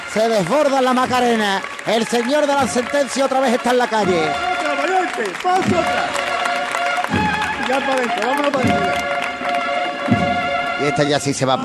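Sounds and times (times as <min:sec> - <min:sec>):
crowd clapping along to a song: 0:00.0 - 0:11.3
speech: 0:00.1 - 0:04.5, 0:05.2 - 0:06.3, 0:07.1 - 0:09.2, 0:10.1 - 0:11.6.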